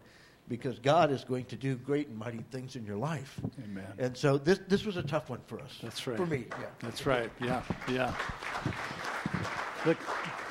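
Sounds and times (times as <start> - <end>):
speech: 0.5 - 8.9, 9.8 - 10.1
audience clapping: 5.9 - 10.5.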